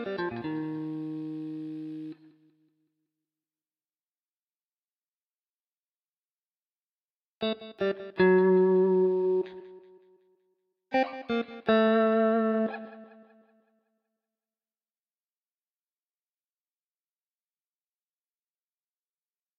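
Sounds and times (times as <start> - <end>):
jazz guitar: 0.0 - 2.2, 7.4 - 9.8, 11.0 - 13.2.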